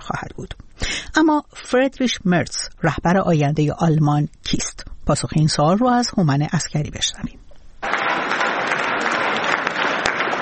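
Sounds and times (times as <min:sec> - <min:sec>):
speech: 0:00.4 - 0:00.6, 0:01.2 - 0:07.4
supporters applauding and cheering: 0:07.8 - 0:10.3.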